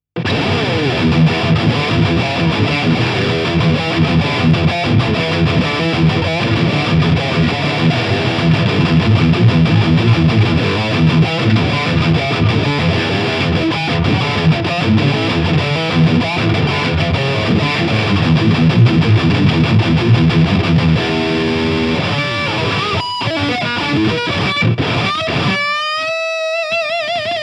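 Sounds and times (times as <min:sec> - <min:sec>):
LTD MG 1001 high gain electric guitar: 0:00.1 - 0:27.4.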